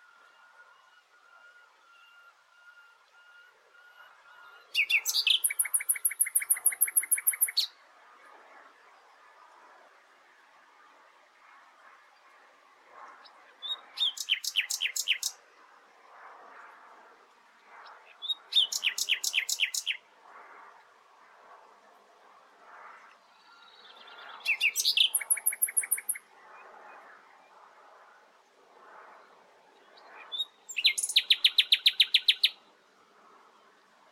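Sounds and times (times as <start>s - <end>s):
common nightingale song: 0.1s - 7.8s, 13.6s - 15.4s, 18.0s - 20.0s, 23.2s - 26.3s, 29.8s - 32.6s.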